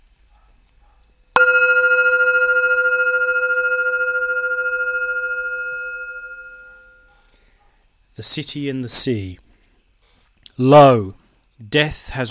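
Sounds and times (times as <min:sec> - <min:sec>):
gong strike: 0:01.4 - 0:07.0
speech: 0:08.2 - 0:09.4, 0:10.6 - 0:12.2.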